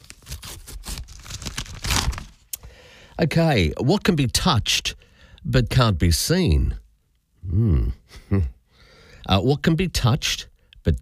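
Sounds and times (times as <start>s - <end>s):
paper envelope being torn open: 0.0s - 2.5s
speech: 3.2s - 6.8s, 7.5s - 8.6s, 9.2s - 11.0s.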